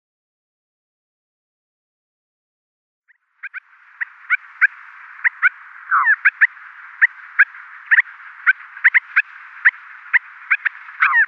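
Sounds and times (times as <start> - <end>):
cream-colored courser giving sharp short calls: 3.4 - 11.2.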